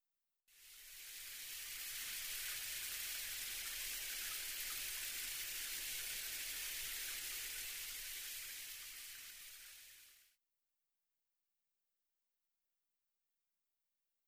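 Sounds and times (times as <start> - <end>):
shower running: 0.5 - 10.3.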